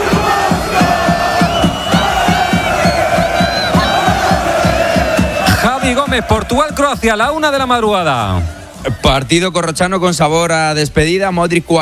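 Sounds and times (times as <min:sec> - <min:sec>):
Croatian football fans shouting in stadium: 0:00.0 - 0:09.2
speech: 0:06.1 - 0:11.8.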